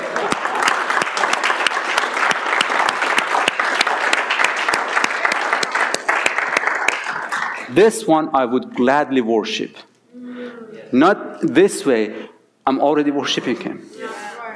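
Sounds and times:
audience clapping hands: 0:00.0 - 0:08.0
speech: 0:07.7 - 0:09.9, 0:10.9 - 0:13.9.

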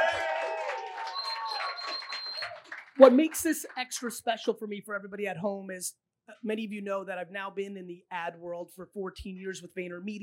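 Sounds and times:
whooping voices: 0:00.0 - 0:02.6
live audience clapping: 0:00.0 - 0:04.6
speech: 0:03.0 - 0:10.2.

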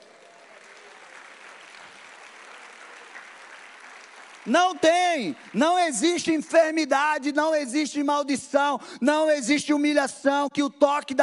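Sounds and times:
audience applause: 0:00.0 - 0:06.2
speech: 0:04.4 - 0:11.2.

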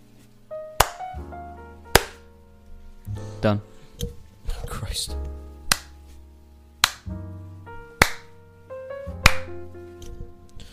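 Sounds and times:
sharp loud hand claps: 0:00.8 - 0:01.2, 0:02.0 - 0:02.2, 0:05.7 - 0:06.0, 0:06.8 - 0:07.1, 0:08.0 - 0:08.3, 0:09.2 - 0:09.5
speech: 0:03.4 - 0:04.2, 0:04.9 - 0:05.3.

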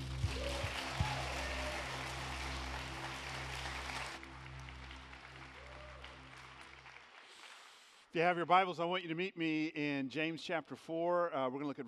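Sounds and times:
church congregation applauding to welcome a pastor: 0:00.0 - 0:08.1
speech: 0:08.1 - 0:11.8.

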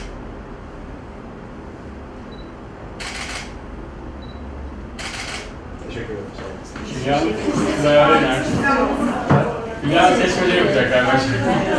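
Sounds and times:
low hum: 0:00.0 - 0:11.7
camera shutter clicks: 0:03.0 - 0:03.6, 0:05.0 - 0:05.5
speech: 0:06.0 - 0:09.2, 0:09.8 - 0:11.7.

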